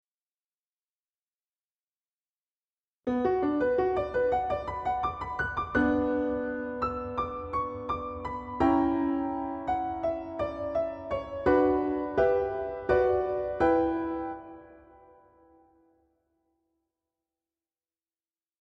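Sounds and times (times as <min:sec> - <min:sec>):
piano sketch: 0:03.1 - 0:16.0.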